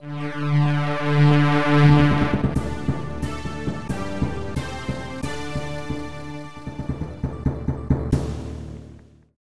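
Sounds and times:
game console logo jingle: 0.2 - 7.8.

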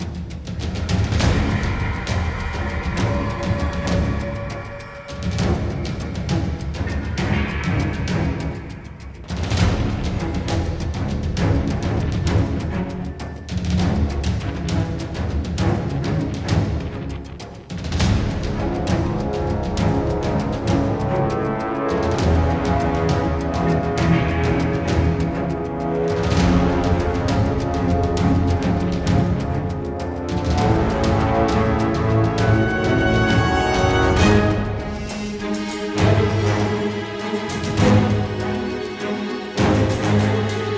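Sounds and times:
battle music: 0.0 - 40.7.

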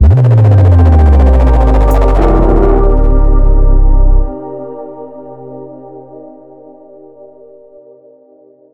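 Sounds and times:
transition end sound: 0.0 - 4.4.

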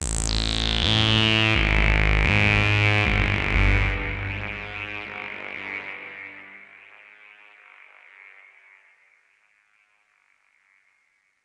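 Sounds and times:
synth one-shot: 0.4 - 6.6.

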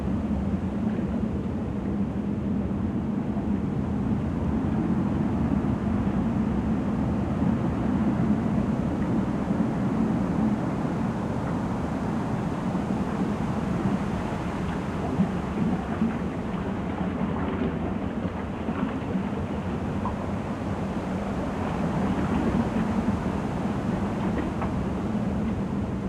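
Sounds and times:
cave water rumble in ice caves: 0.2 - 26.0.

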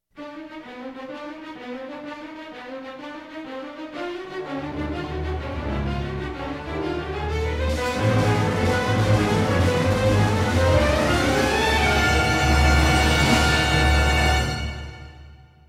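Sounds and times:
short suspense music: 4.5 - 15.6.

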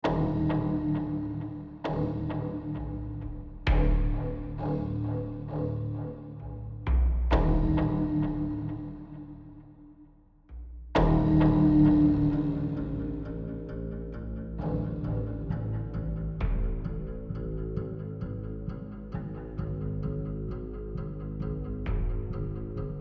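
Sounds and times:
low tension pulse loop: 0.0 - 22.9.

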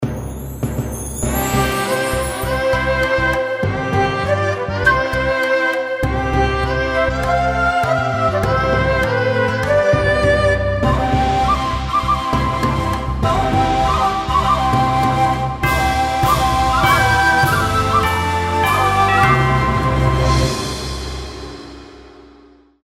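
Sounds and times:
wedding background music: 0.0 - 22.4.

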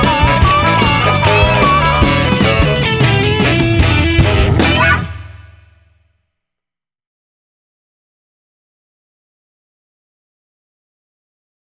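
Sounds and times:
blues harmonica: 0.0 - 5.5.

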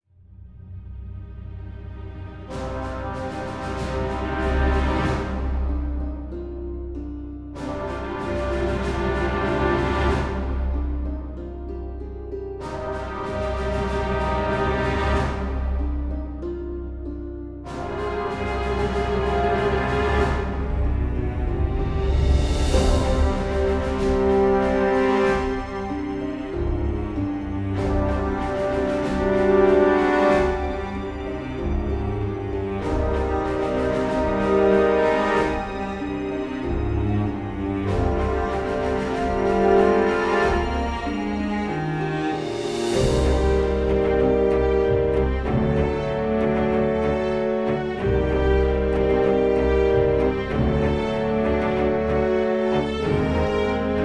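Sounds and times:
epic music: 0.2 - 54.0.

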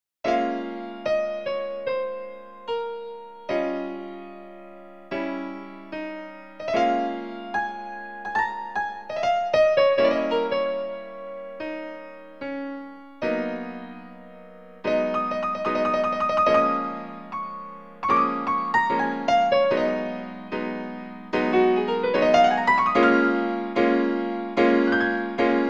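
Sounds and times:
piano: 0.2 - 25.6.

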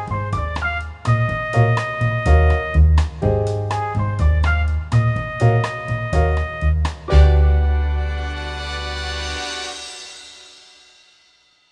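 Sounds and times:
baritone saxophone: 0.1 - 2.9, 3.8 - 9.7.

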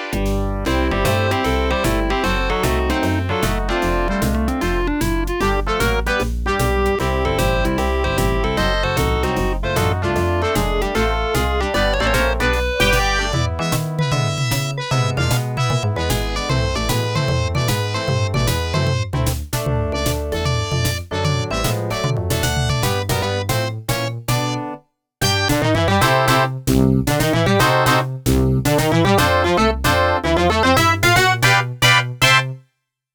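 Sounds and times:
big band jazz: 0.1 - 24.6, 25.2 - 32.6.

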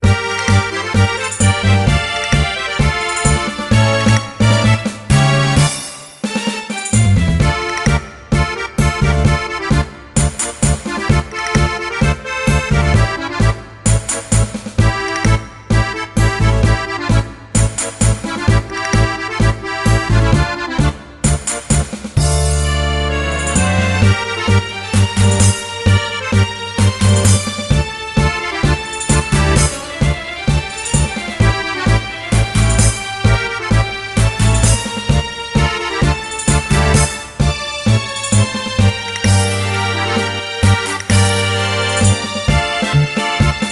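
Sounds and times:
blue birds loop: 0.0 - 5.9, 6.8 - 43.7.

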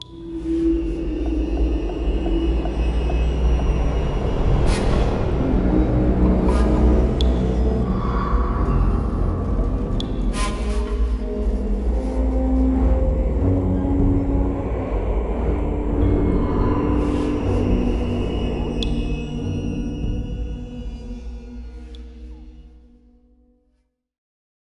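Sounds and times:
lower level catacombs ambience: 0.0 - 22.9.

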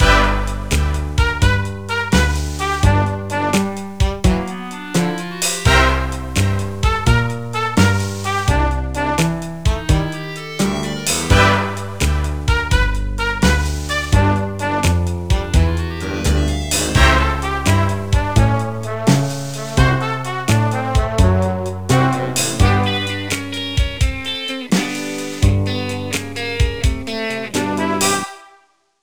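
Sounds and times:
slow music: 0.0 - 28.5.

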